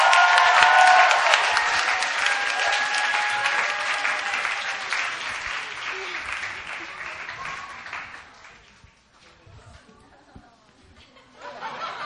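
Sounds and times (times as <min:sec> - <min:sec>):
church congregation cheering: 0:00.0 - 0:08.6
church congregation applauding the preacher: 0:00.0 - 0:09.0
laughter: 0:09.8 - 0:12.0.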